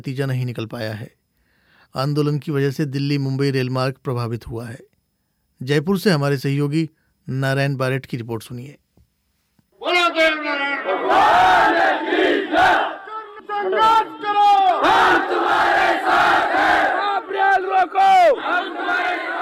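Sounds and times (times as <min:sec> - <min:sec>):
speech: 0:00.0 - 0:01.2, 0:01.9 - 0:04.9, 0:05.6 - 0:08.8
crowd chanting religious slogans at protest: 0:10.5 - 0:19.4.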